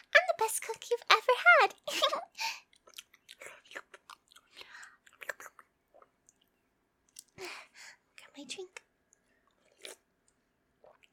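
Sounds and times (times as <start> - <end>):
speech: 0.4 - 2.4
chewing a bite of home-cooked food: 2.6 - 7.4, 9.1 - 11.1.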